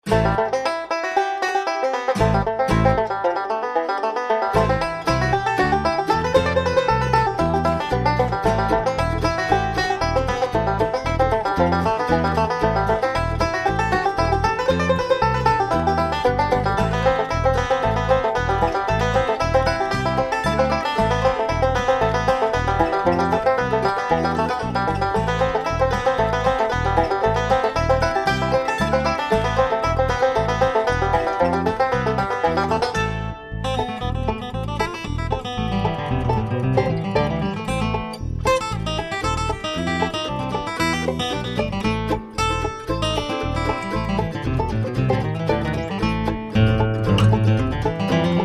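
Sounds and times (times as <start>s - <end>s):
fiddle: 0.0s - 48.4s.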